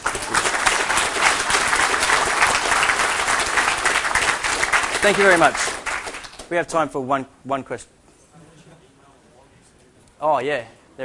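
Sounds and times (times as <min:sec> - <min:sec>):
audience applause: 0:00.0 - 0:06.5
speech: 0:05.0 - 0:05.8, 0:06.5 - 0:07.9, 0:10.2 - 0:11.0.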